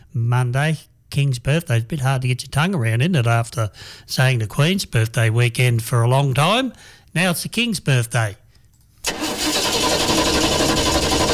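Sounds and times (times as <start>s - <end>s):
speech: 0.2s - 8.4s
car engine starting and idling: 9.0s - 11.3s.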